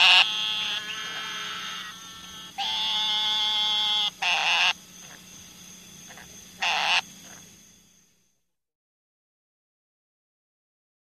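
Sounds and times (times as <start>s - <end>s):
eastern narrowmouth toad Gastrophryne carolinensis giving nasal buzzy bleats: 0.0s - 5.2s, 6.1s - 7.4s.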